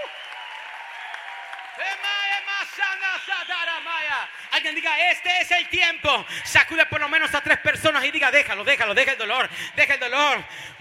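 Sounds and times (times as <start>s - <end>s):
audience applause: 0.0s - 3.3s
speech: 1.8s - 10.7s.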